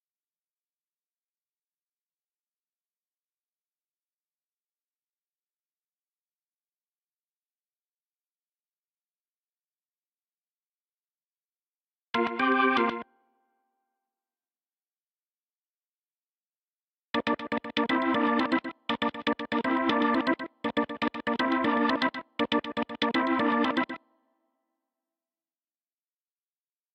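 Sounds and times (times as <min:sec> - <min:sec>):
organ: 0:12.2 - 0:13.1, 0:17.2 - 0:24.0.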